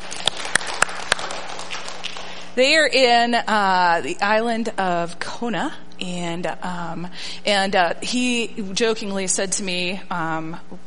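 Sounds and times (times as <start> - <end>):
sharp hand claps from a gathered group: 0.0 - 2.4
constant hiss of noise from a gathered group: 0.0 - 10.8
speech: 2.6 - 10.8.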